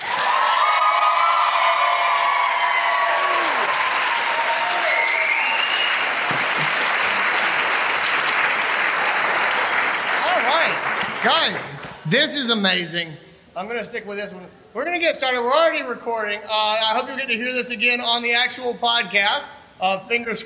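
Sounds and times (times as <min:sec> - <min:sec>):
audience applause: 0:00.0 - 0:12.0
laughter: 0:06.2 - 0:07.8
speech: 0:11.2 - 0:20.4.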